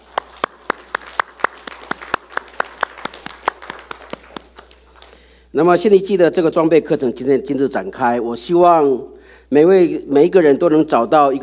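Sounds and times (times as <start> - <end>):
audience applause: 0.0 - 5.3
speech: 5.5 - 11.4.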